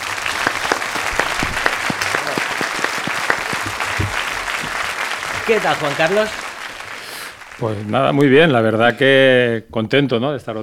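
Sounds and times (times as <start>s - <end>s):
group of people clapping: 0.0s - 8.4s
speech: 5.5s - 6.4s, 7.6s - 10.6s.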